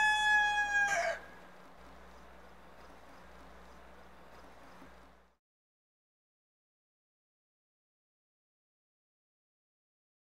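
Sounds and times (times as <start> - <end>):
rooster: 0.0 - 1.4.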